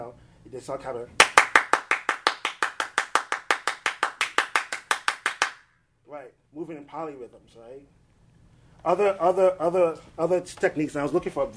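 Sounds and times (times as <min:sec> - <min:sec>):
speech: 0:00.1 - 0:01.5, 0:06.1 - 0:08.0, 0:08.8 - 0:11.5
hand clapping as percussion: 0:01.2 - 0:05.6.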